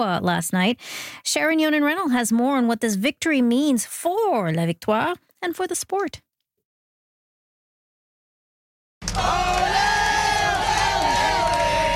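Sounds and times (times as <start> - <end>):
speech: 0.0 - 6.2, 9.2 - 9.8
fans cheering as Montreal Victoire hockey team steps off the bus: 9.0 - 11.9
fans shouting: 9.1 - 11.9.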